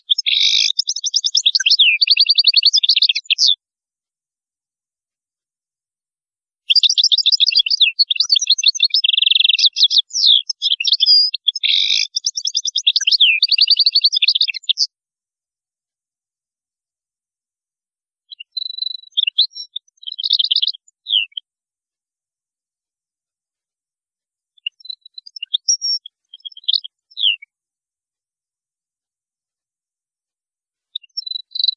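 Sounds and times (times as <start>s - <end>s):
European goldfinch twittering song: 0.1s - 3.6s, 6.7s - 14.9s, 18.3s - 21.4s, 24.6s - 27.4s.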